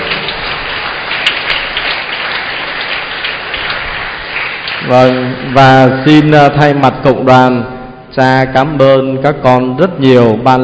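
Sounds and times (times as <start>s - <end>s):
large crowd applause: 0.0s - 5.9s
speech: 4.9s - 10.6s.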